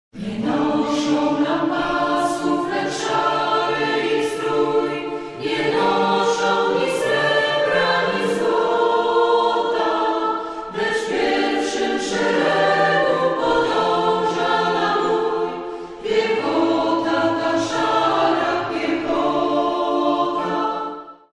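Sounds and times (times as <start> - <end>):
a cappella singing: 0.2 - 21.3.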